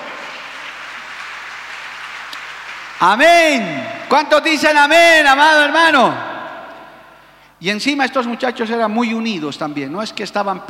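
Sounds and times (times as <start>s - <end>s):
audience applause: 0.0s - 4.2s
speech: 3.0s - 6.3s, 7.6s - 10.6s.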